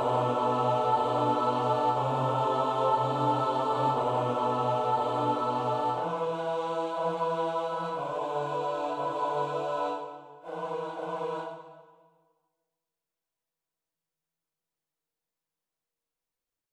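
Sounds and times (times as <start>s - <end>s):
midi choral piece: 0.0s - 12.1s.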